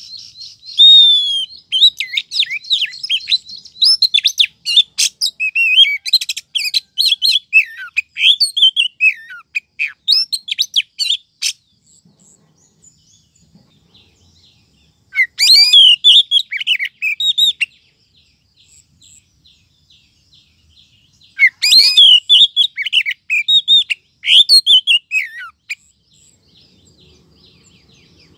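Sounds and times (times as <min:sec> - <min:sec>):
Oriental magpie-robin rising whistle: 0:00.0 - 0:11.6, 0:15.1 - 0:17.7, 0:21.4 - 0:25.6.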